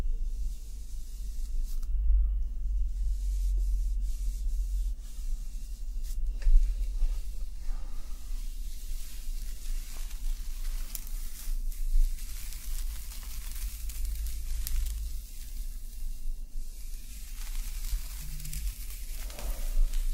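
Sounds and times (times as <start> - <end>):
heavy low rumble: 0.0 - 20.1
hair rustling and brushing: 2.7 - 20.1
faint crisp crackles: 6.0 - 20.1.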